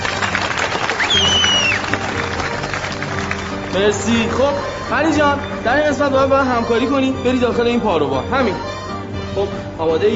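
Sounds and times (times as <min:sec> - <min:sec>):
audience applause at a stage show: 0:00.0 - 0:05.6
brief high whistling tone: 0:00.6 - 0:02.0
speech: 0:03.8 - 0:10.1.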